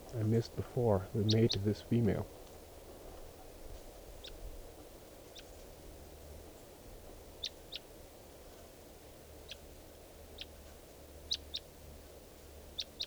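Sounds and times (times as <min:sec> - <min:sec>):
wild bird calling: 0:00.0 - 0:02.3
speech: 0:00.1 - 0:02.4.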